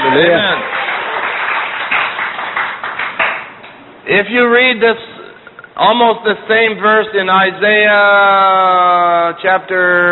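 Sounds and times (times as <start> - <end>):
church congregation applauding: 0.0 - 3.7
speech: 0.2 - 0.7, 4.1 - 5.1, 5.8 - 10.1.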